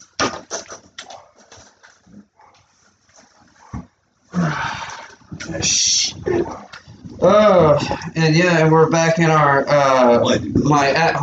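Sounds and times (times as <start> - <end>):
pet animals barking: 0.6 - 5.3, 6.1 - 7.1
speech: 5.5 - 11.2.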